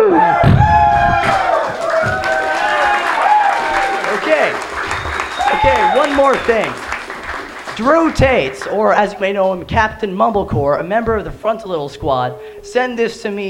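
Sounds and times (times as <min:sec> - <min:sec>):
audience applause: 0:00.1 - 0:09.2
speech: 0:06.3 - 0:06.8, 0:07.8 - 0:13.4.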